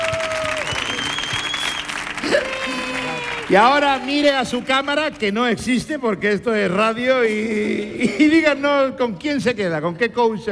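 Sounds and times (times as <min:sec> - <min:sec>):
audience applause: 0:00.0 - 0:06.8
speech: 0:03.5 - 0:10.4.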